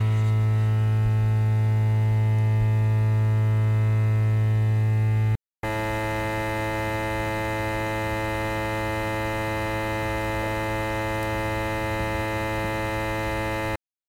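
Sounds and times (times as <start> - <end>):
noise pollution from two transformer units in Noordgouwe: 0.0 - 13.8.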